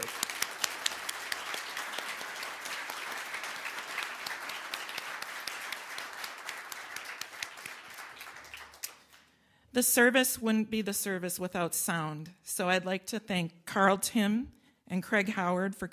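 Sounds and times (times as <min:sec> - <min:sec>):
audience applause: 0:00.0 - 0:09.2
speech: 0:09.8 - 0:15.9.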